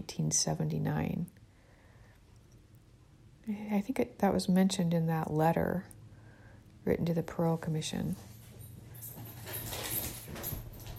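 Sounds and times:
speech: 0.0s - 1.4s, 3.5s - 6.0s, 6.8s - 8.3s
dog playing joyfully with scrabbling and scuffling: 8.3s - 10.9s.

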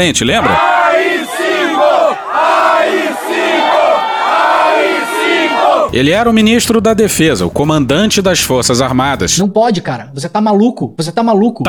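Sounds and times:
speech: 0.0s - 1.2s, 5.9s - 11.6s
protest crowd chanting: 0.4s - 5.9s.

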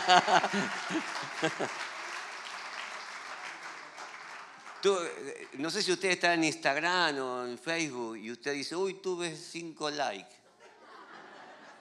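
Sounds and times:
laughter: 0.0s - 2.2s, 10.5s - 11.8s
audience applause: 0.0s - 6.0s
speech: 0.1s - 1.9s, 4.8s - 10.4s.

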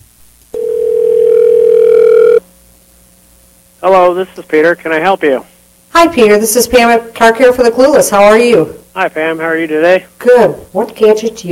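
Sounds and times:
telephone dial tone: 0.6s - 2.4s
speech: 3.8s - 11.5s.

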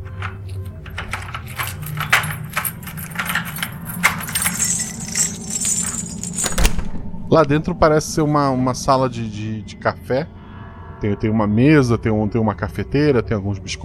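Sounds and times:
keys jingling: 0.0s - 6.8s
lock being unlocked: 0.0s - 6.8s
low rumbling hum: 0.0s - 12.4s
speech: 7.3s - 10.4s, 11.0s - 13.8s.

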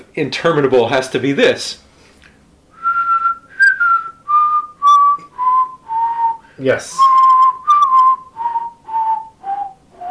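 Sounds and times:
speech: 0.2s - 1.8s, 6.6s - 7.2s
whistled theme song: 2.7s - 10.0s.

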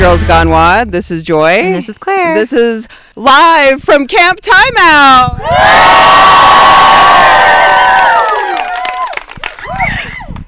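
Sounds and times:
speech: 0.0s - 7.5s
crowd of campers cheering: 5.4s - 10.2s.

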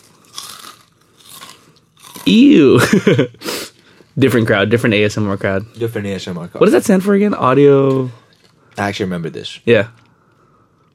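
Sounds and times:
crunching on corn snack chips: 0.0s - 2.4s
speech: 2.3s - 3.4s, 4.2s - 8.2s, 8.8s - 10.0s.

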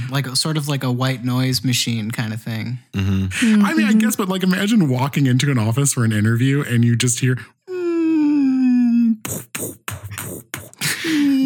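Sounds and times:
speech: 0.1s - 7.6s
voice imitating whale noises: 3.0s - 3.3s, 7.7s - 11.4s.

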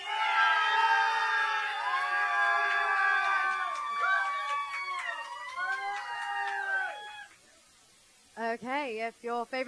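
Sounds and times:
audience cheering: 0.0s - 7.4s
speech: 8.6s - 9.6s.

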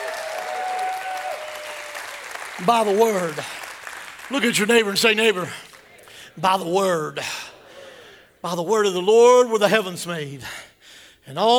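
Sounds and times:
audience hand clapping: 0.0s - 6.2s
speech: 2.6s - 3.6s, 4.3s - 5.6s, 6.4s - 7.5s, 8.4s - 10.6s, 11.2s - 11.5s.

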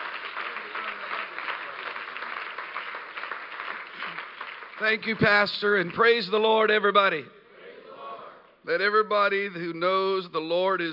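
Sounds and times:
audience clapping hands: 0.0s - 6.5s
speech: 4.8s - 7.4s, 8.7s - 10.9s.

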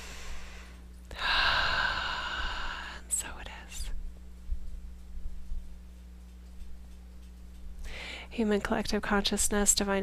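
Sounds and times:
deep breath during a spiritual activation webinar: 0.0s - 3.0s, 7.8s - 8.3s
faint low hum: 0.0s - 10.0s
speech: 8.4s - 10.0s.

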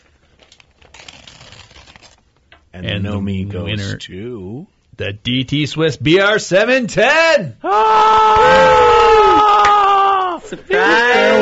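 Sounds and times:
package torn open by hand, rustling and ripping: 0.0s - 2.5s
speech: 2.8s - 9.5s, 10.5s - 11.4s.

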